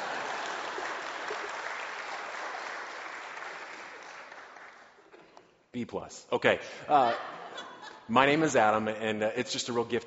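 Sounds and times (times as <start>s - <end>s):
audience clapping: 0.0s - 5.4s
speech: 5.8s - 10.0s.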